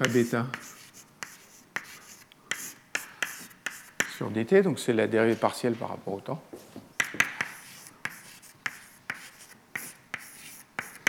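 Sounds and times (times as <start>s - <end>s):
speech: 0.0s - 0.8s, 4.2s - 6.8s
writing on a board: 0.0s - 4.3s, 7.0s - 11.0s.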